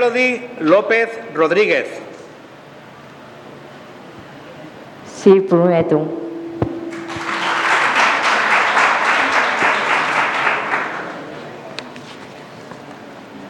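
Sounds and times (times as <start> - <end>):
speech: 0.0 - 2.1, 5.2 - 6.2
applause: 6.9 - 11.4.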